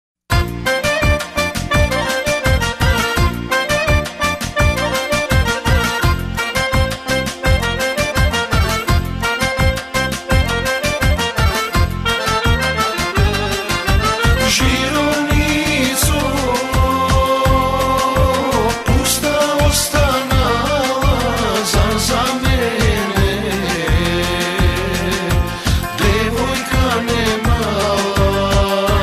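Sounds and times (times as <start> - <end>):
Macedonian music: 0.3 - 29.0.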